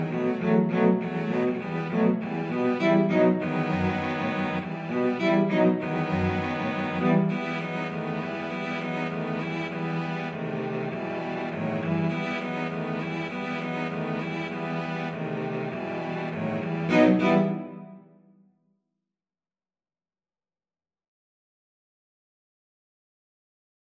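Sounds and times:
cello quartet: 0.0s - 18.0s.

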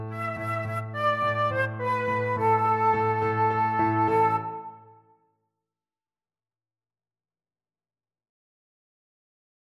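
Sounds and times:
flute: 0.1s - 5.2s.

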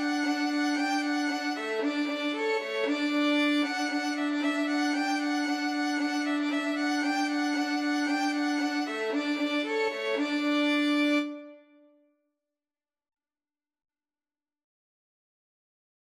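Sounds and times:
violin trio playing: 0.0s - 11.6s.

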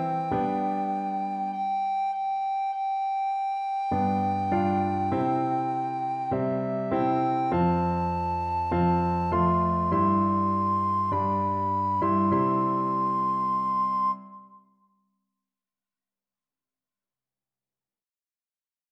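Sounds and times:
alto recorder playing a hymn: 0.0s - 14.6s.

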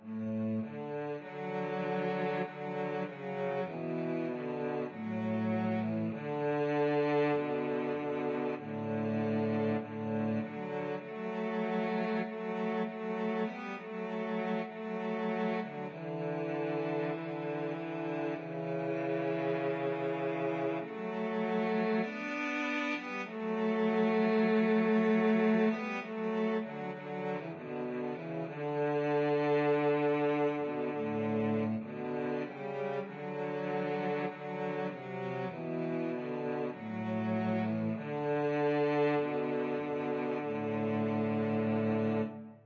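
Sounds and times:
cello duet: 0.0s - 42.6s.

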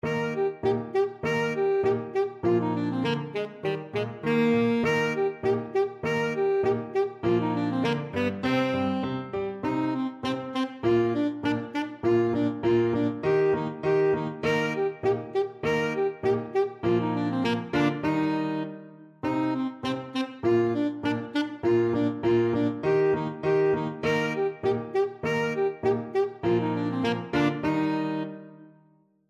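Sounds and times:
alto saxophone: 0.0s - 28.9s.

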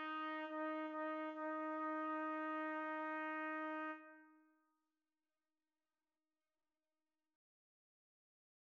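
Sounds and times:
trumpet trio playing: 0.0s - 4.0s.

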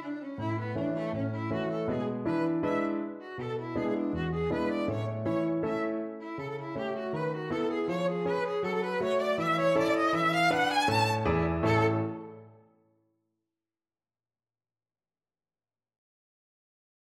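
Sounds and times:
violin pizzicato: 0.0s - 12.3s.

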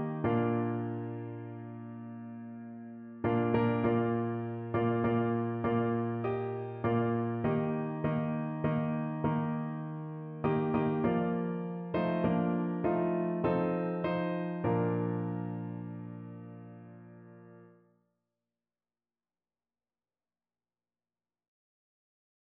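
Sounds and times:
hymn played on piano: 0.0s - 17.7s.

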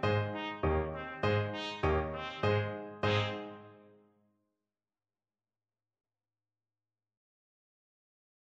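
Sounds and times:
trumpet playing: 0.0s - 4.0s.

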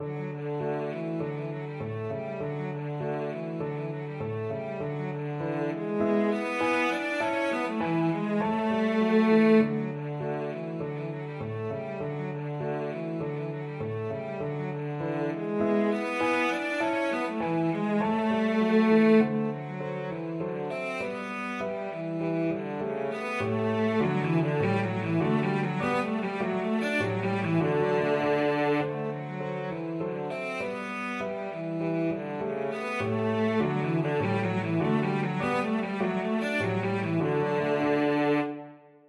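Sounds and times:
cello: 0.0s - 39.0s.

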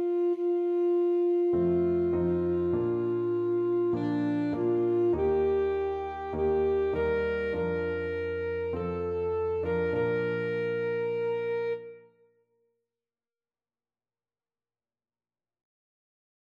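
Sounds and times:
alto saxophone: 0.0s - 12.3s.

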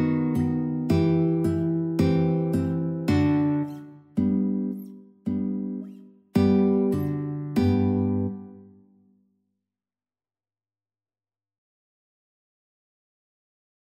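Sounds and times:
guitar duet: 0.0s - 8.8s.

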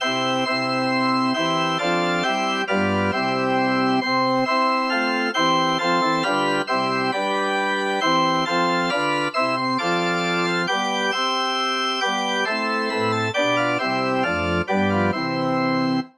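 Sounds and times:
organ: 0.0s - 16.1s.

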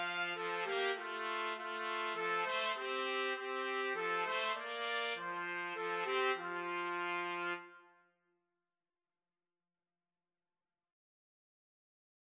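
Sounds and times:
trumpet karaoke backing track: 0.0s - 7.9s.

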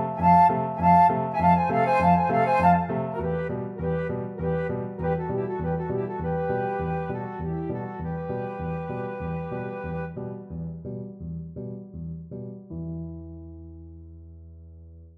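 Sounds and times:
flute duet: 0.0s - 10.5s.

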